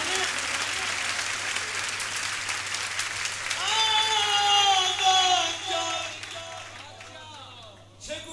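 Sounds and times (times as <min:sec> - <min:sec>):
crowd clapping: 0:00.0 - 0:08.0
loud voices chanting or singing: 0:03.6 - 0:07.8.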